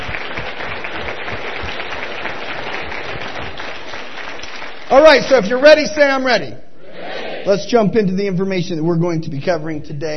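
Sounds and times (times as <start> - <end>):
audience applause: 0.0 - 5.4
speech: 4.9 - 6.6, 7.4 - 10.1.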